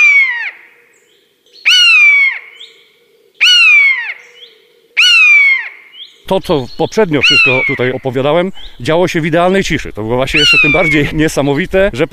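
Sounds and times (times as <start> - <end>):
common buzzard shrill mewing screeches: 0.0 - 0.6, 1.7 - 2.4, 3.4 - 4.2, 5.0 - 5.8, 7.1 - 8.2, 10.2 - 11.2
speech: 6.3 - 12.1.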